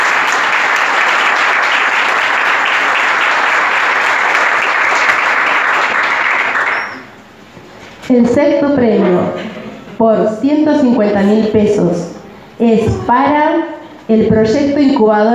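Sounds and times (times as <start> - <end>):
audience applause: 0.0 - 7.1
speech: 8.1 - 15.3.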